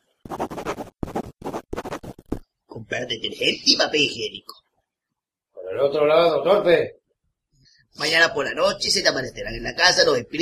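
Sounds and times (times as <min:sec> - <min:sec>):
pen scratching across paper: 0:00.0 - 0:02.4
speech: 0:02.9 - 0:04.6, 0:05.8 - 0:07.0, 0:08.0 - 0:10.4.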